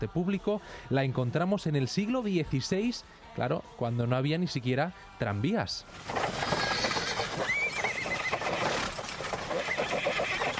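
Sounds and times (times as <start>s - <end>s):
speech: 0.0s - 6.5s
hooves clip-clopping: 5.9s - 10.5s
horse whinnying: 6.0s - 10.5s
horse-drawn carriages rolling: 6.0s - 10.5s.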